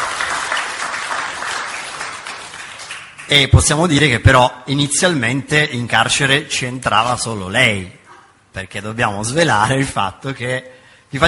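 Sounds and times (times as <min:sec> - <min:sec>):
audience applause: 0:00.0 - 0:03.3
speech: 0:03.3 - 0:11.2.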